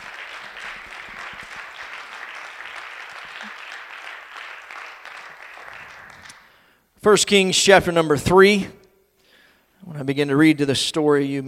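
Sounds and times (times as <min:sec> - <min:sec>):
audience applauding: 0:00.0 - 0:06.6
speech: 0:07.0 - 0:08.8, 0:10.1 - 0:11.4.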